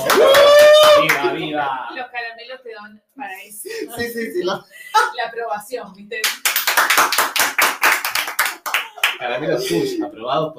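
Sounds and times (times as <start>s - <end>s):
people clapping in studio: 0.0s - 1.5s, 6.2s - 9.8s
speech: 2.8s - 7.8s, 9.2s - 10.5s.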